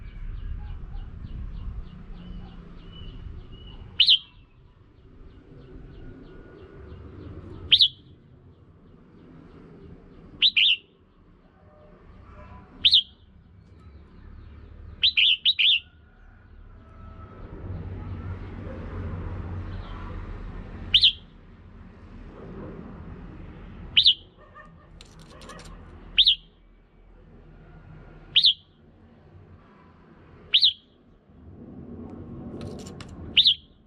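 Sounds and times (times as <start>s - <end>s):
red-whiskered bulbul chirps: 0.0s - 4.7s, 7.2s - 8.1s, 10.4s - 11.0s, 12.8s - 15.9s, 20.9s - 21.3s, 24.0s - 26.7s, 28.4s - 28.8s, 30.5s - 31.0s, 32.8s - 33.8s.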